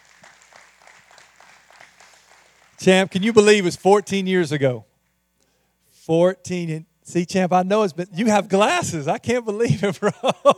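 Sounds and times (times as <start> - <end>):
faint applause at a church service welcoming a visiting pastor: 0.0 - 2.8
speech: 2.8 - 4.9, 6.1 - 10.5
laughter: 9.6 - 10.5.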